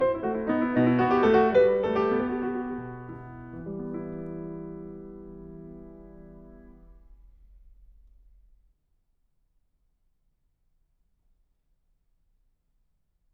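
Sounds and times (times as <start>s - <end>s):
piano: 0.0s - 8.6s.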